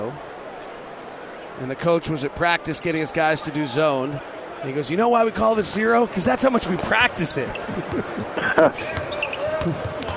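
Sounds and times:
busy crowd murmur: 0:00.0 - 0:10.1
speech: 0:01.6 - 0:10.0
laughter: 0:06.7 - 0:10.0
basketball dribbled on a court: 0:08.9 - 0:10.1
high sneaker squeaks: 0:08.9 - 0:10.1.

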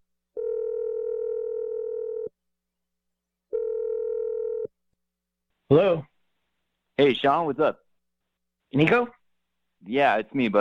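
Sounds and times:
telephone ringback tones: 0:00.4 - 0:02.3, 0:03.5 - 0:04.7
speech: 0:05.7 - 0:06.1, 0:07.0 - 0:07.8, 0:08.7 - 0:09.2, 0:09.8 - 0:10.6.

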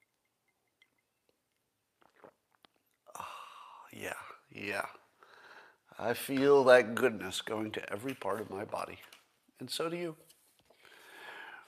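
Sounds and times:
person sipping coffee: 0:00.8 - 0:03.9
speech: 0:04.0 - 0:05.0, 0:06.0 - 0:10.3.

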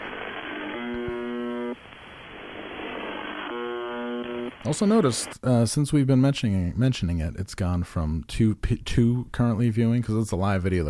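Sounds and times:
UVB 76 shortwave radio station buzzer tone: 0:00.0 - 0:01.8, 0:02.8 - 0:04.6
speech: 0:04.6 - 0:10.8.

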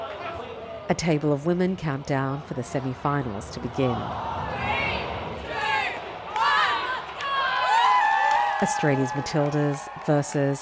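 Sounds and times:
speech: 0:00.9 - 0:04.8, 0:08.6 - 0:10.5
pub crowd cheering: 0:02.6 - 0:10.5.

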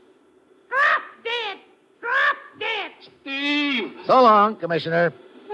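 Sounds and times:
parrot squawking: 0:00.7 - 0:03.2
speech: 0:04.1 - 0:05.3.

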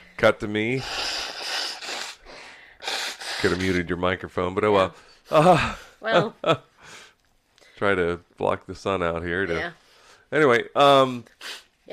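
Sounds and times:
speech: 0:00.2 - 0:01.1, 0:03.4 - 0:06.7, 0:07.8 - 0:11.9
nose blowing: 0:00.7 - 0:04.0, 0:11.0 - 0:11.8.

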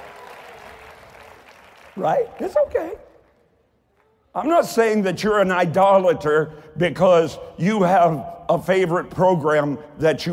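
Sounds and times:
audience applause: 0:00.0 - 0:03.0
speech: 0:02.0 - 0:03.1, 0:04.4 - 0:10.3.

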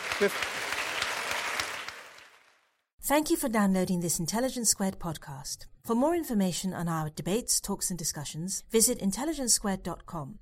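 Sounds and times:
audience applause: 0:00.0 - 0:02.7
speech: 0:00.2 - 0:00.6, 0:03.1 - 0:10.3.

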